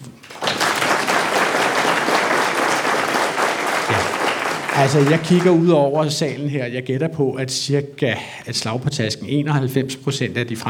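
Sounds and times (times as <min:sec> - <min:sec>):
crowd applause in a large room: 0:00.2 - 0:05.9
speech: 0:04.8 - 0:10.6.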